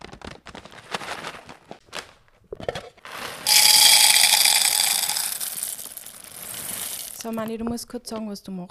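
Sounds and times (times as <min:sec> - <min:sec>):
coffee beans filled into cappuccino machine: 0:03.1 - 0:07.4
speech: 0:07.2 - 0:08.6.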